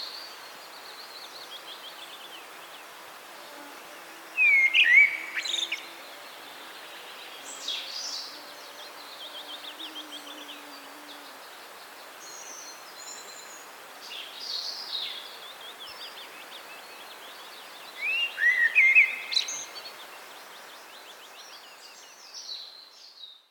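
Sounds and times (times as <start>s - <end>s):
common blackbird singing: 4.4s - 11.4s, 17.9s - 19.8s.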